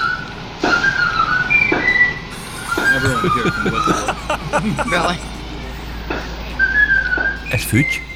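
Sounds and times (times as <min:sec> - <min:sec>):
Ecuadorian garbage truck playing its melody: 0:00.0 - 0:08.1
laughter: 0:02.3 - 0:08.1
speech: 0:03.2 - 0:05.4, 0:07.5 - 0:08.1.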